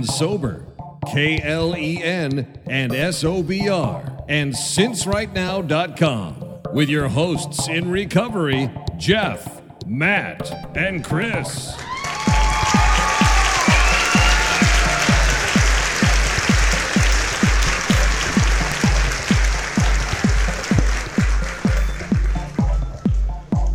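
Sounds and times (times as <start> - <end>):
speech: 0.0 - 11.9
applause: 11.8 - 23.1.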